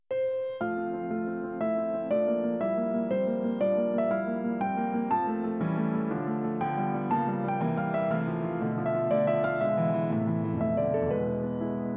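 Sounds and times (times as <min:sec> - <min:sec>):
piano nocturne: 0:00.0 - 0:11.9.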